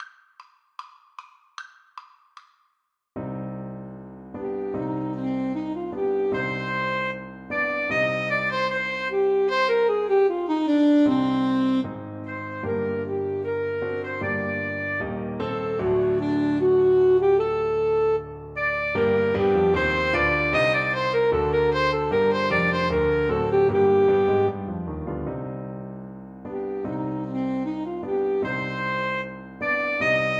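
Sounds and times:
alto saxophone duet: 0:04.6 - 0:24.8, 0:26.6 - 0:30.3.

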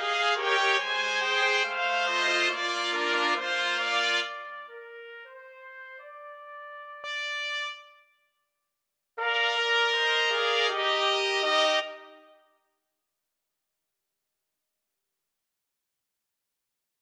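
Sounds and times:
trumpet ensemble: 0:00.0 - 0:08.0, 0:09.2 - 0:12.4.

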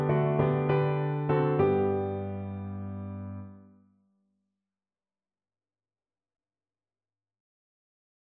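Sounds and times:
piano: 0:00.0 - 0:03.8.

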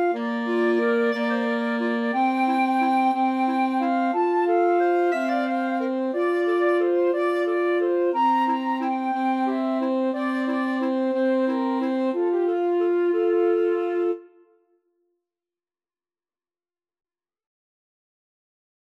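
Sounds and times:
flexible mixed ensemble of three players: 0:00.0 - 0:14.3.

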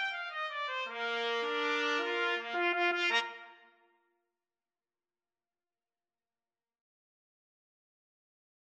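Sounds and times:
trumpet duet: 0:00.0 - 0:03.7.

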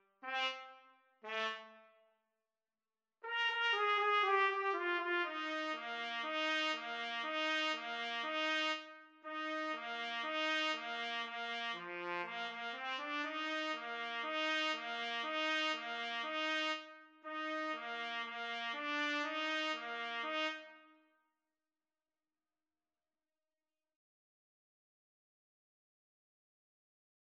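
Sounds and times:
trumpet: 0:00.0 - 0:02.0, 0:03.2 - 0:21.1.

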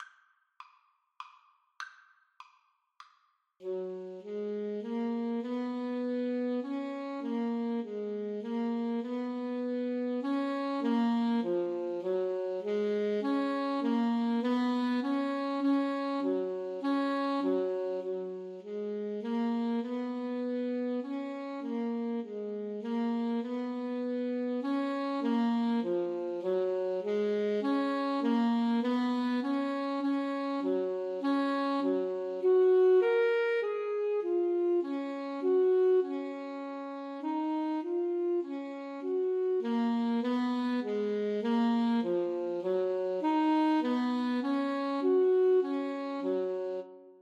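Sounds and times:
saxophone duet playing a minuet in C: 0:03.6 - 0:47.2.

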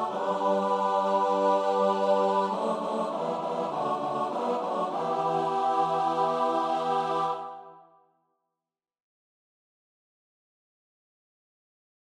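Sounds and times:
choir singing: 0:00.0 - 0:08.0.

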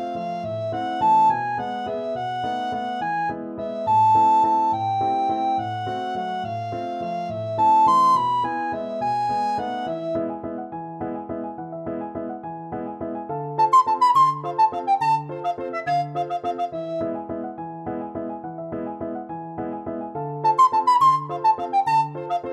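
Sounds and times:
recorder playing classical piece: 0:00.0 - 0:10.2, 0:13.6 - 0:17.3, 0:20.4 - 0:22.5.

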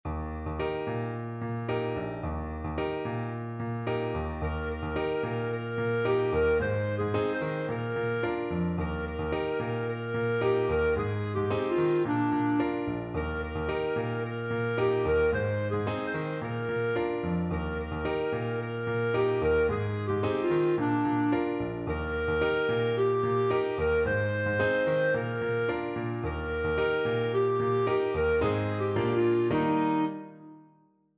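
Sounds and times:
clarinet: 0:00.3 - 0:30.9.

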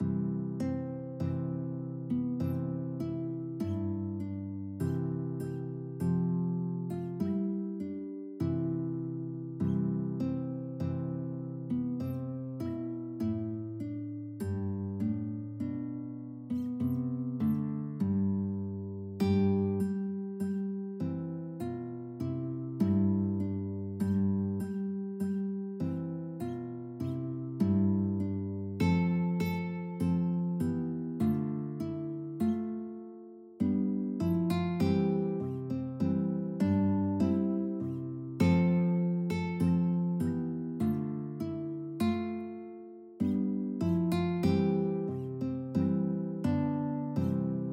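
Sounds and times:
guitar: 0:00.0 - 0:47.7.

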